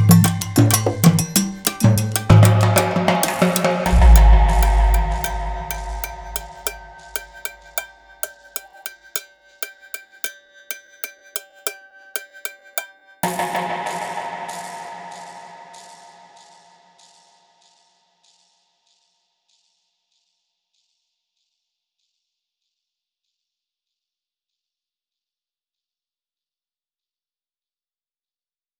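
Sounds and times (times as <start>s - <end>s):
rare percussion: 0.0s - 14.8s.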